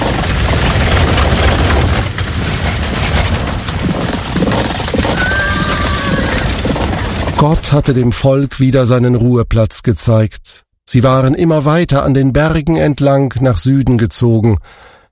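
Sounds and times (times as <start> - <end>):
horse-drawn war chariots thundering out: 0.0 - 8.2
speech: 7.4 - 14.9.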